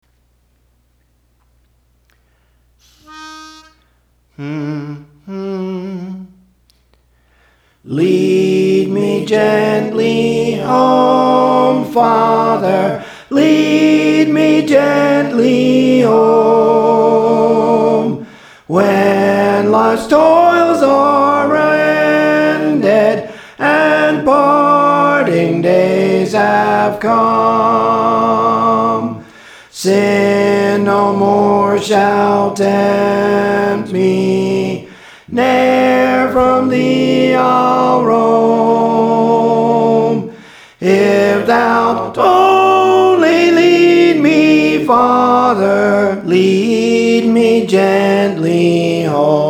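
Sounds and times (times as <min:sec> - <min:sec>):
soprano singing: 0:04.4 - 0:06.4, 0:07.9 - 0:49.4.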